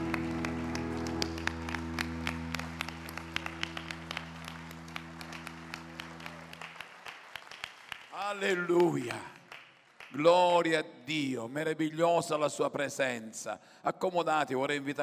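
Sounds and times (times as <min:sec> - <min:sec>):
audience applause: 0:00.0 - 0:10.2
speech: 0:08.3 - 0:09.3, 0:10.1 - 0:15.0.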